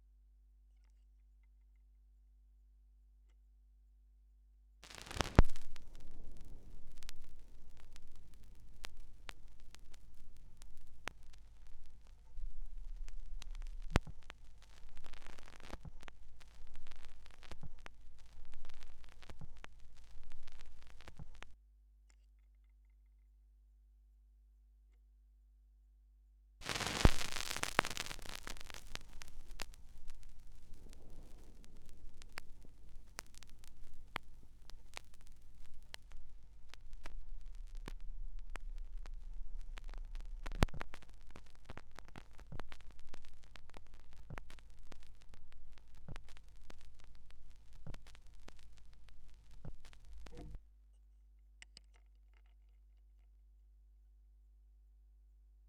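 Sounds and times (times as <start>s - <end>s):
vinyl record noise: 4.8s - 21.6s, 26.6s - 50.6s.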